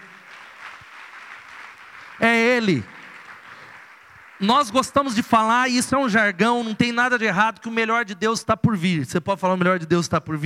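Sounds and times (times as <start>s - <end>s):
audience applause: 0.0s - 5.5s
speech: 2.2s - 3.0s, 4.4s - 10.4s.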